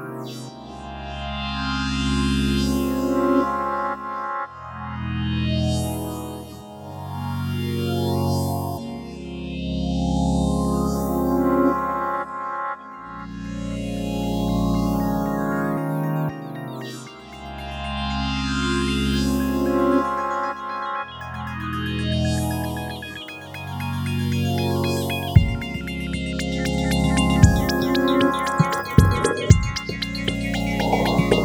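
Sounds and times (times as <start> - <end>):
ambient soundscape: 0.0 - 31.4.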